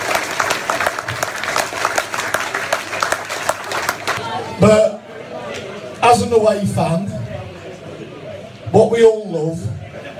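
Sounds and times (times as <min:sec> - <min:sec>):
crowd applauding: 0:00.0 - 0:04.4
speech: 0:04.6 - 0:04.9, 0:06.2 - 0:07.2, 0:08.7 - 0:09.7.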